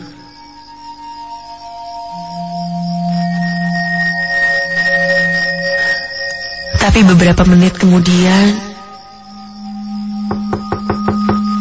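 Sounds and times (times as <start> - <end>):
low drone: 0.0 - 11.5
speech: 6.9 - 8.6
knocking on a bedroom door from outside: 10.3 - 11.5.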